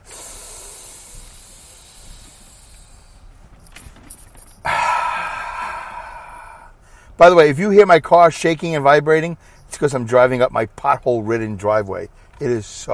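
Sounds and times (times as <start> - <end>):
deep breaths in through nose, out through mouth: 0.0 - 3.5, 4.6 - 7.2
speech: 7.2 - 12.9.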